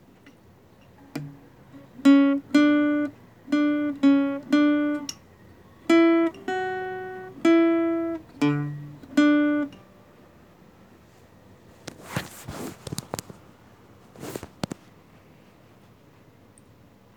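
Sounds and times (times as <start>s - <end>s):
guitar: 0.0s - 13.5s.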